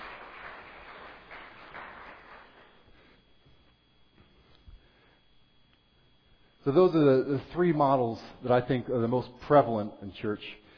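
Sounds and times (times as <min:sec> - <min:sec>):
audience applause: 0:00.0 - 0:02.8
speech: 0:06.6 - 0:10.6.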